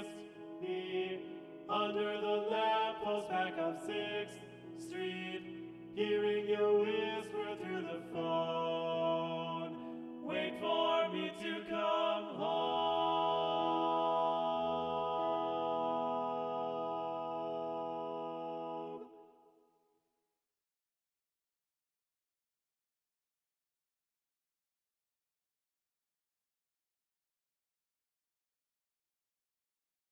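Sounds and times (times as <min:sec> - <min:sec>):
descant singing: 0:00.0 - 0:19.1.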